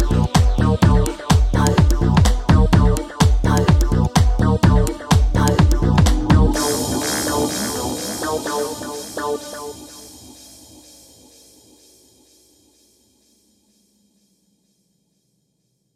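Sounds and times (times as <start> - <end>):
full mix music track: 0.0 - 10.8.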